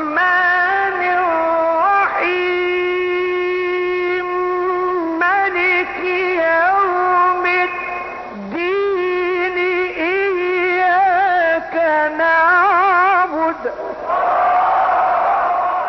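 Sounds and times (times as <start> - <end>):
person reciting in long wavering melodic notes: 0.0 - 14.1
enthusiastic crowd cheering during recitation: 14.0 - 15.8.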